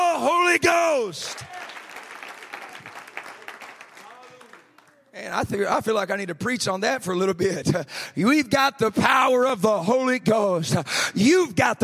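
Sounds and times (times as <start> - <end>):
speech: 0.5 - 1.5, 5.3 - 11.8
audience clapping hands: 1.2 - 5.7.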